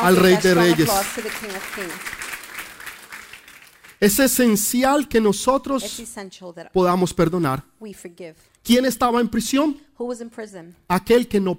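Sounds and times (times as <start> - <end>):
speech: 0.0 - 2.2, 4.0 - 11.5
crowd applauding: 0.0 - 4.4.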